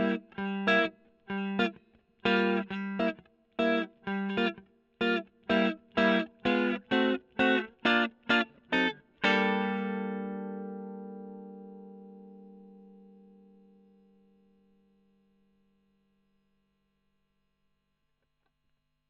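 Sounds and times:
electric guitar recorded with Gefell microphone: 0:00.0 - 0:15.2.

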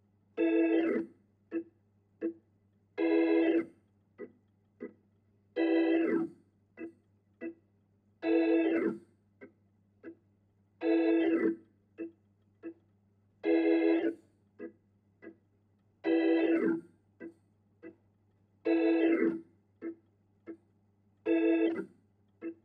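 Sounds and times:
Hammond organ: 0:00.4 - 0:01.6, 0:03.0 - 0:03.7, 0:05.6 - 0:06.3, 0:08.2 - 0:09.0, 0:10.8 - 0:12.1, 0:13.4 - 0:14.2, 0:16.0 - 0:16.8, 0:18.6 - 0:19.4, 0:21.3 - 0:21.9.

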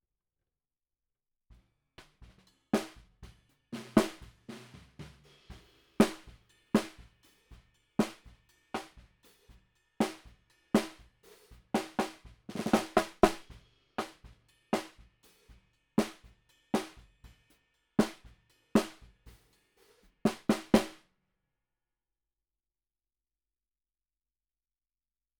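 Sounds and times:
bottom snare drum: 0:02.0 - 0:15.4, 0:16.0 - 0:17.1, 0:18.0 - 0:21.0.

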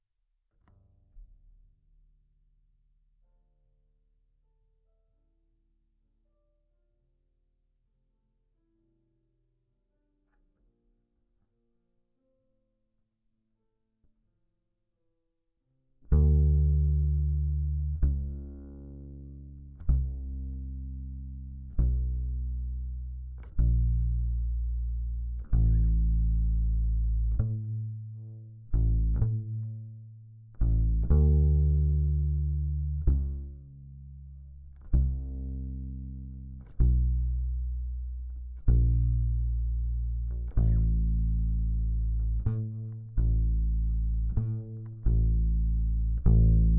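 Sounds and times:
bass guitar recorded by direct input: 0:16.0 - 0:46.7.

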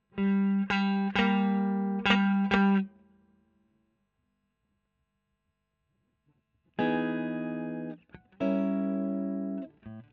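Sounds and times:
electric guitar: 0:00.1 - 0:03.0, 0:06.7 - 0:10.1.

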